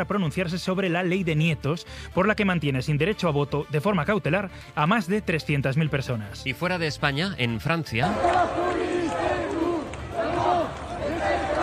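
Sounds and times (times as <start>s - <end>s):
speech: 0.0s - 9.4s
protest crowd in Lyon, France chanting over education funding: 8.0s - 11.6s.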